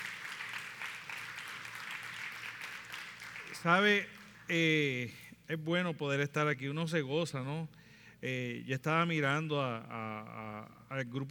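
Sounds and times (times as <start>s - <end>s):
audience applause: 0.0s - 4.6s
speech: 3.6s - 11.2s.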